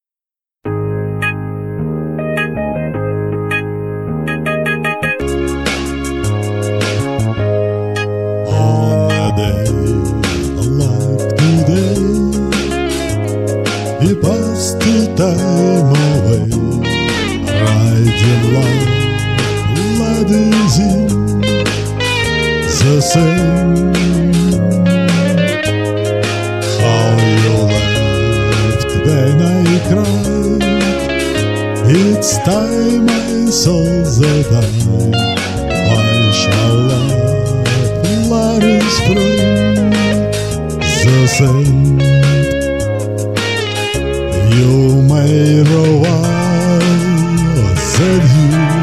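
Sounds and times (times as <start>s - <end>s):
solo guitar: 0.0s - 48.8s.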